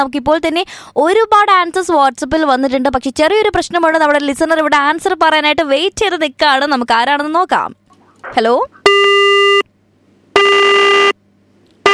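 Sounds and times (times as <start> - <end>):
speech: 0.0 - 8.8
busy tone of a dropped call on a radio phone-in: 8.9 - 9.6, 10.4 - 11.2.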